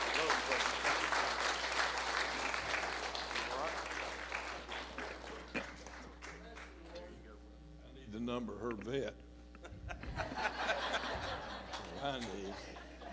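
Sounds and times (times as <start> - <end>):
audience applause: 0.0 - 6.6
speech: 8.3 - 9.3, 12.0 - 12.8
laughter: 9.6 - 13.1.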